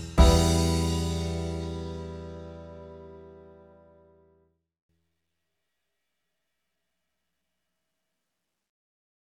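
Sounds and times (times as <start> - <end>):
jazz backing track in E minor: 0.0 - 3.8.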